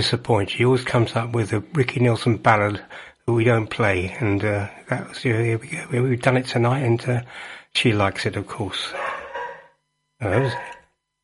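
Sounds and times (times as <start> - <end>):
speech: 0.0 - 9.2, 10.2 - 10.8
dog in studio: 8.9 - 10.9.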